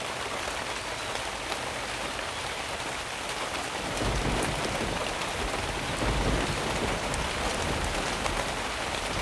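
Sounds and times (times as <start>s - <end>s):
severe thunderstorm: 0.1s - 9.1s.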